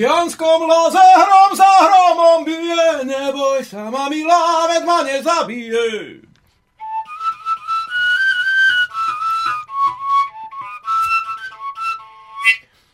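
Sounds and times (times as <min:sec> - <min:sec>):
speech: 0:00.0 - 0:06.3
folk tune played on a small whistle pipe: 0:06.8 - 0:12.9.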